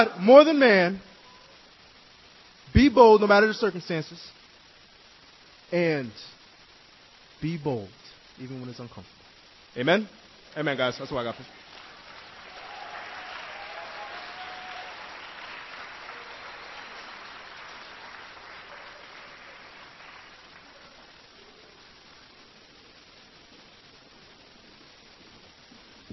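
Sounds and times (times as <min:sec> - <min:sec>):
speech: 0:00.0 - 0:01.1, 0:02.7 - 0:04.4, 0:05.7 - 0:06.4, 0:07.4 - 0:09.2, 0:09.8 - 0:11.6
audience clapping: 0:11.3 - 0:21.2
faint whoops: 0:12.4 - 0:17.0.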